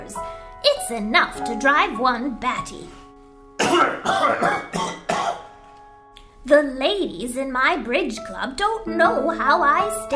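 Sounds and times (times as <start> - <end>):
speech: 0.1 - 3.0, 3.8 - 5.0, 6.4 - 10.1
man coughing: 3.6 - 5.5.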